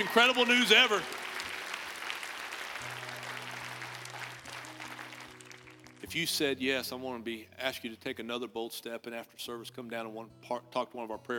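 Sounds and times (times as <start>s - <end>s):
speech: 0.0s - 1.2s, 6.1s - 11.3s
audience applause: 0.0s - 6.0s.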